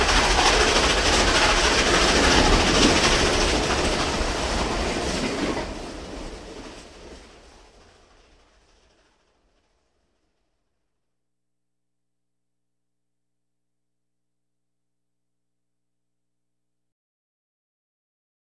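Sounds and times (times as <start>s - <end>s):
steam locomotive in daylight: 0.0s - 10.7s.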